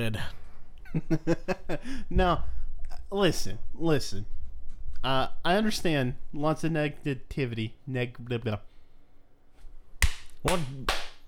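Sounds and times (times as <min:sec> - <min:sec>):
speech: 0:00.0 - 0:04.4, 0:05.0 - 0:08.7, 0:10.4 - 0:11.0
hand clapping: 0:10.0 - 0:11.2.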